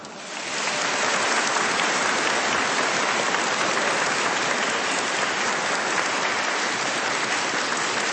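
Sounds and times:
warm audience applause: 0.0s - 8.1s.

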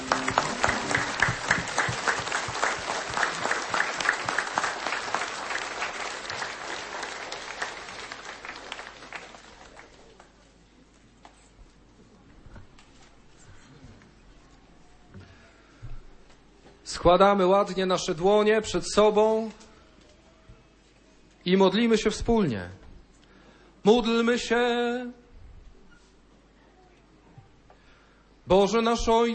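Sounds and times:
applause: 0.0s - 10.4s
speech: 17.0s - 19.6s, 21.5s - 22.8s, 23.8s - 25.2s, 28.5s - 29.3s.

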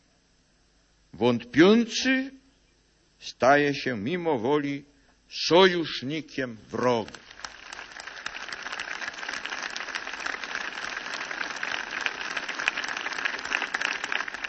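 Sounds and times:
speech: 1.2s - 2.4s, 3.2s - 7.2s
audience applause: 7.1s - 14.4s.

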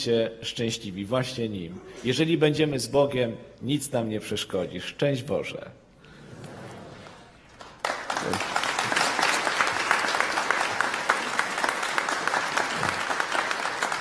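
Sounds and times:
speech: 0.0s - 5.8s
audience applause: 7.5s - 13.9s.

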